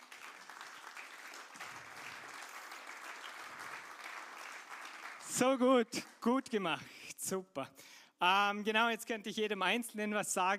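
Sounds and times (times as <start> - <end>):
audience applause: 0.0 - 5.6
speech: 5.3 - 10.5.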